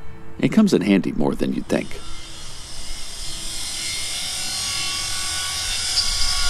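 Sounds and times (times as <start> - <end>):
speech: 0.4 - 2.2
welding torch cutting through a padlock and heavy chain on a silo door: 1.6 - 6.4.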